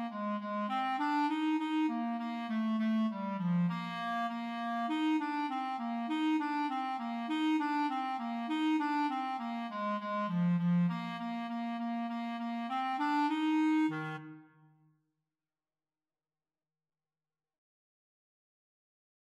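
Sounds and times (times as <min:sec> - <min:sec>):
clarinet duet: 0:00.0 - 0:14.6.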